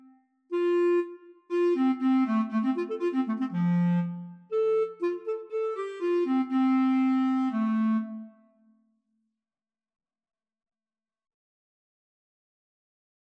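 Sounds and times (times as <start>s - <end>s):
oboe playing in a duet: 0.0s - 8.4s
clarinet playing in a duet: 0.0s - 8.6s.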